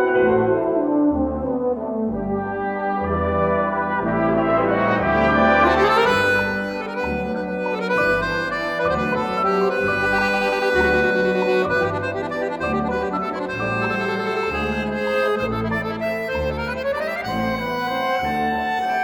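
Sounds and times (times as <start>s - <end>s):
brass band playing: 0.0s - 19.0s.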